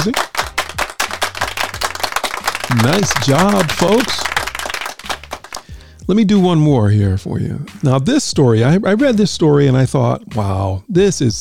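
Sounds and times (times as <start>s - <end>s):
speech: 0.0s - 0.4s, 2.8s - 4.3s, 6.1s - 11.3s
audience applause: 0.0s - 5.7s.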